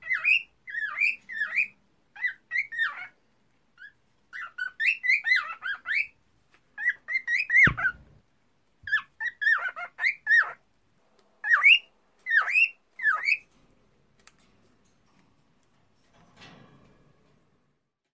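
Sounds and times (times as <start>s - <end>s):
female cockatiel singing: 0.0s - 3.2s, 3.8s - 6.2s, 6.8s - 8.1s, 8.9s - 10.6s, 11.4s - 13.5s.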